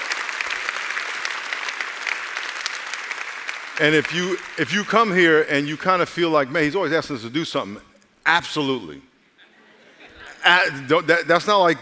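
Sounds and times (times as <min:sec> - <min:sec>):
audience applause: 0:00.0 - 0:06.1
speech: 0:03.8 - 0:09.1, 0:10.4 - 0:11.8
laughter: 0:09.4 - 0:10.9.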